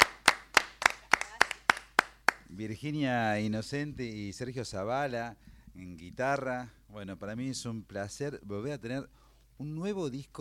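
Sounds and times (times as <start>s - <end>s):
hand clapping in honour of guest performers: 0.0s - 2.5s
speech: 2.6s - 10.3s.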